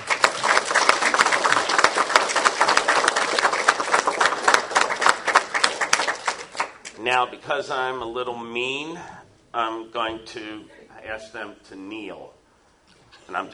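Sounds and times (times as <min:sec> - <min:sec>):
applause: 0:00.0 - 0:07.0
speech: 0:07.1 - 0:12.4, 0:13.3 - 0:13.5.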